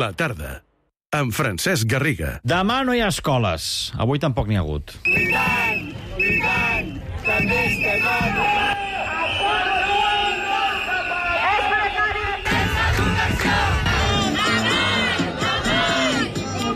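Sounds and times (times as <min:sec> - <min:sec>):
speech: 0:00.0 - 0:06.7, 0:07.4 - 0:08.6
teachers and professors shouting and chanting during a nationwide education strike: 0:05.1 - 0:16.7.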